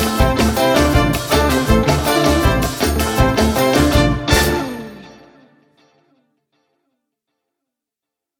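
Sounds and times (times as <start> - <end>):
comedic RnB groove: 0.0 - 5.1.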